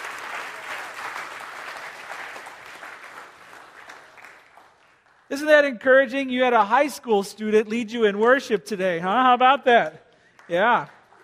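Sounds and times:
room full of people clapping: 0:00.0 - 0:05.5, 0:09.7 - 0:11.2
speech: 0:05.3 - 0:11.2.

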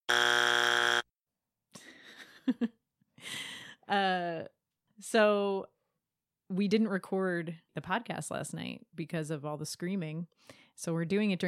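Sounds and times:
loud harsh game show buzzer: 0:00.0 - 0:01.1
speech: 0:02.5 - 0:02.8, 0:03.9 - 0:05.8, 0:06.5 - 0:11.4.

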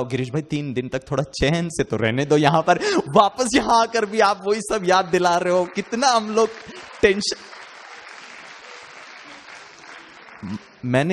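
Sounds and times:
speech: 0:00.0 - 0:07.5, 0:10.4 - 0:11.1
audience applause: 0:03.6 - 0:11.1.

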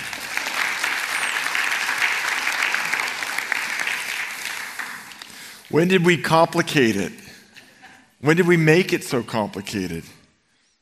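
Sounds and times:
audience clapping: 0:00.0 - 0:06.1
speech: 0:05.7 - 0:07.2, 0:08.2 - 0:10.2.

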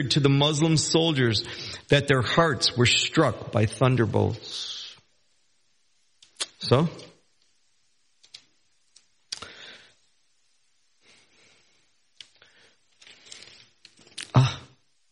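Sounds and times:
speech: 0:00.0 - 0:04.7, 0:06.6 - 0:07.1
thin paper book pages being turned: 0:12.2 - 0:14.3.

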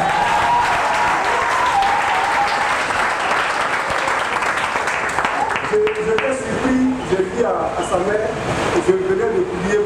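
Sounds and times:
church congregation clapping during a testimony: 0:00.0 - 0:06.4
speech: 0:07.5 - 0:09.7.

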